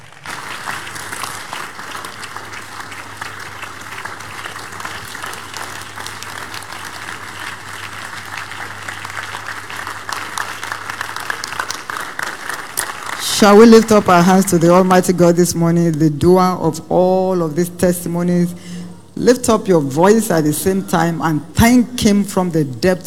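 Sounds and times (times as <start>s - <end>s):
audience applause: 0.0s - 15.1s
speech: 13.4s - 18.6s, 19.2s - 23.0s.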